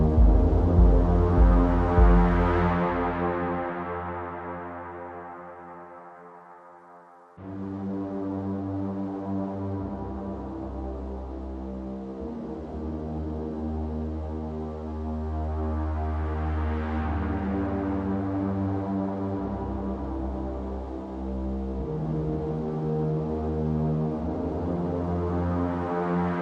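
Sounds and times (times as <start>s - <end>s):
drums: 0.0s - 3.2s
bass: 0.0s - 5.8s, 7.4s - 26.4s.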